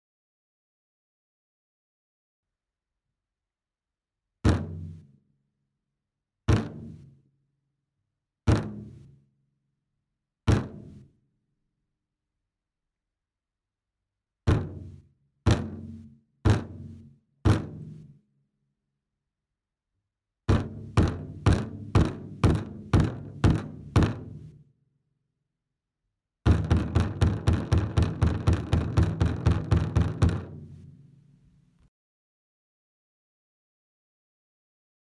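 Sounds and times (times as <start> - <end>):
taiko drums: 4.5 - 4.9, 8.5 - 8.9, 14.5 - 14.8, 15.5 - 15.9, 16.5 - 16.9, 20.5 - 24.4, 26.5 - 30.6.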